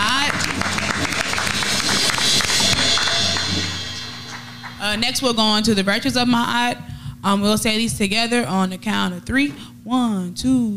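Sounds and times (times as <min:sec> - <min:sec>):
audience hand clapping: 0:00.0 - 0:05.4
speech: 0:04.9 - 0:10.7.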